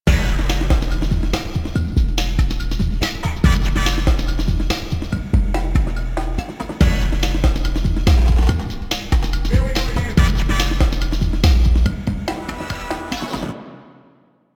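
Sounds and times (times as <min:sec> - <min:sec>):
music: 0:00.0 - 0:14.5.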